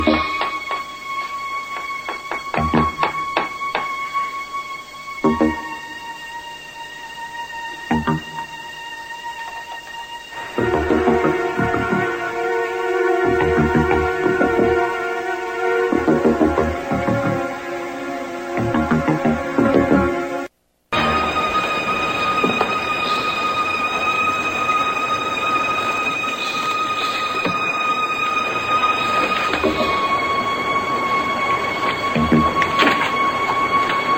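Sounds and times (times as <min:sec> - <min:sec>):
suspense music: 0:00.0 - 0:34.1.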